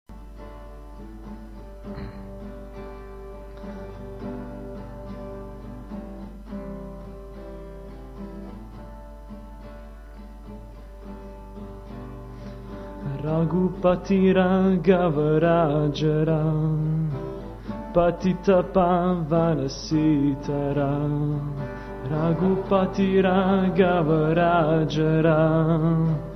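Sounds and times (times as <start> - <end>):
kirtan devotional chanting: 13.0 - 17.3, 17.9 - 26.3.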